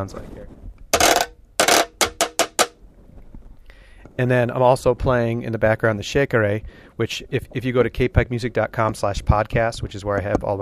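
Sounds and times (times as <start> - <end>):
speech: 0.0 - 0.5, 4.2 - 10.6
washboard struck and scraped with a stick like a snare drum: 1.0 - 2.7.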